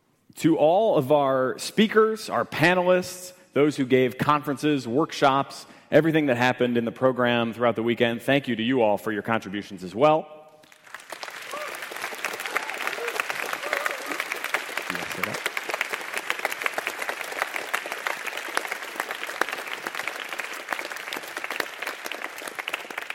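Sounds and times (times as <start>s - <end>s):
speech: 0.4s - 10.4s
audience applause: 10.6s - 23.1s.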